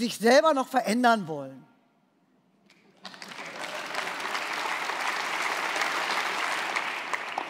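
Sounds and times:
speech: 0:00.0 - 0:01.7
audience clapping: 0:02.7 - 0:07.4.

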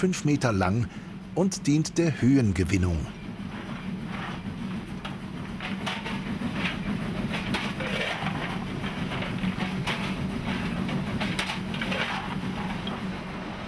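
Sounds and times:
speech: 0:00.0 - 0:03.2
train running through a tunnel: 0:00.0 - 0:13.6
wheels clicking on rail joints: 0:03.2 - 0:13.4.

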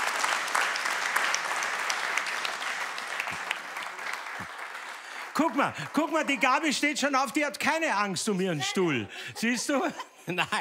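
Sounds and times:
audience applause: 0:00.0 - 0:08.1
speech: 0:05.4 - 0:10.5
laughter: 0:08.6 - 0:10.5.

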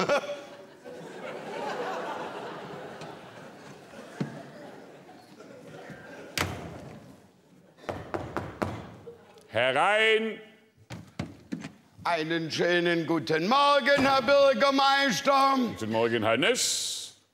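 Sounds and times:
laughter: 0:00.0 - 0:07.0
knocking on a door: 0:07.9 - 0:08.9
speech: 0:09.6 - 0:10.5, 0:12.0 - 0:17.0.

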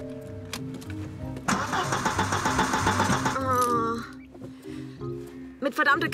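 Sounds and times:
unreliable old car's engine starting and running: 0:00.5 - 0:04.2.

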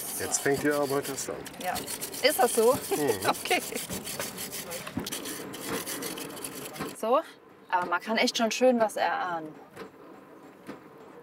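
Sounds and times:
rubbing and scraping as an object is cleaned of dirt: 0:00.0 - 0:07.0
speech: 0:00.2 - 0:05.8, 0:07.0 - 0:09.9.

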